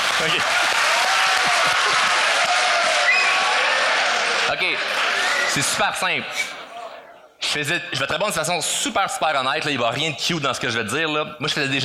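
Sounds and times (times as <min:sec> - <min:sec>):
person applauding: 0:00.0 - 0:03.4
speech: 0:00.2 - 0:00.7, 0:04.5 - 0:06.6, 0:07.6 - 0:11.8.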